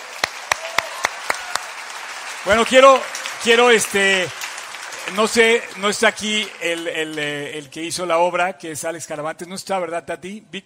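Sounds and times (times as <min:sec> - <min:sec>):
audience applause: 0:00.0 - 0:07.6
speech: 0:02.4 - 0:04.4, 0:05.1 - 0:10.6.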